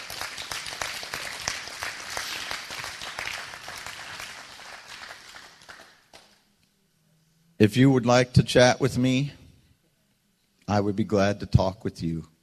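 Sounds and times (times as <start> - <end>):
audience hand clapping applause: 0.0 - 6.5
speech: 7.6 - 9.4, 10.7 - 12.3.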